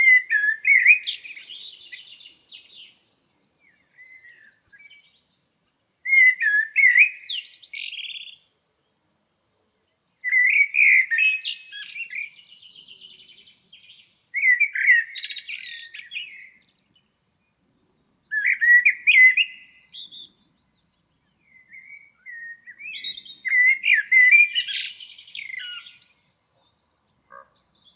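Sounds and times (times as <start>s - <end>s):
blackbird singing: 0.0s - 8.5s, 9.8s - 27.9s.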